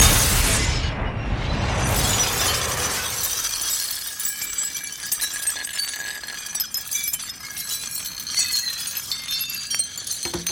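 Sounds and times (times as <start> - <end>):
crash: 0.0 - 5.9.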